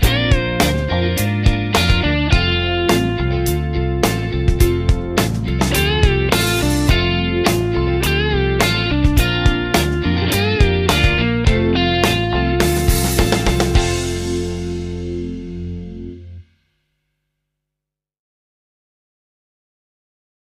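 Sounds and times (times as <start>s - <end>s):
rhythm backing track: 0.0s - 16.2s.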